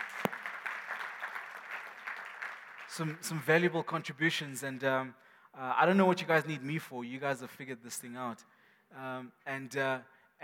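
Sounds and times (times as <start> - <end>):
round of applause from a group: 0.0 - 3.4
speech: 2.9 - 10.4.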